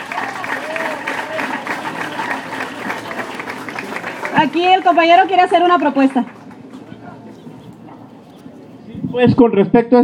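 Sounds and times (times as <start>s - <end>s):
audience clapping: 0.0s - 6.9s
speech: 4.4s - 6.4s, 9.2s - 10.0s.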